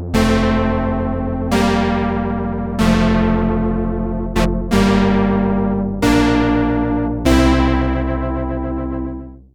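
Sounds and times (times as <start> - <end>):
deep brass: 0.2 - 9.4.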